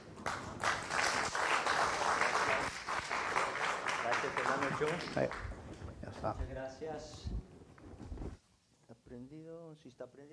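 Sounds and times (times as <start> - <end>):
audience applause: 0.0 - 5.6
speech: 4.6 - 5.6, 6.2 - 7.4, 9.1 - 10.3.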